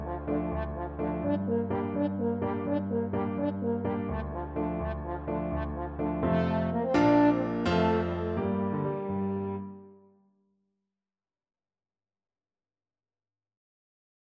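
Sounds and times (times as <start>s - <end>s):
french horn: 0.0s - 9.9s.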